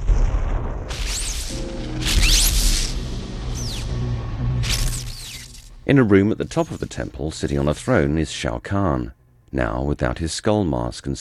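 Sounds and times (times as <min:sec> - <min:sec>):
fire flaring beside a temple in an underground cavern: 0:00.0 - 0:07.6
hissing bursts: 0:00.9 - 0:05.8
swooping high whistling tones: 0:01.0 - 0:05.9
speech: 0:05.9 - 0:11.1.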